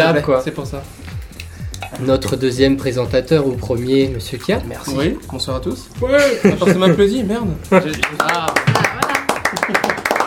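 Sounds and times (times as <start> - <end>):
speech: 0.0 - 1.0, 2.0 - 8.5
laughter: 6.0 - 10.1
people clapping: 7.8 - 10.2.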